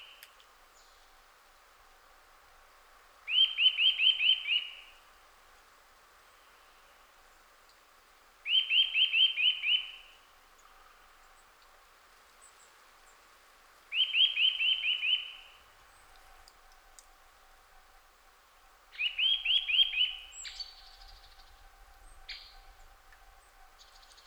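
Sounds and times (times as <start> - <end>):
faint click: 0.1 - 0.6, 7.6 - 7.9, 11.5 - 12.5, 16.0 - 17.2
Eurasian nuthatch whistling: 3.3 - 4.8, 8.5 - 10.2, 13.9 - 15.6, 18.9 - 22.8.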